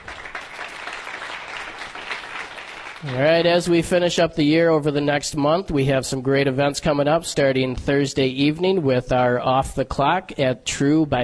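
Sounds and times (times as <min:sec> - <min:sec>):
audience applause: 0:00.0 - 0:03.7
speech: 0:03.0 - 0:11.2.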